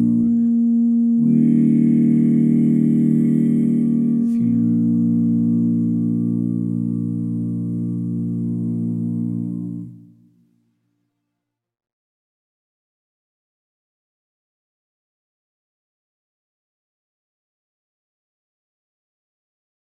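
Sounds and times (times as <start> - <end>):
a cappella singing: 0.0 - 10.1.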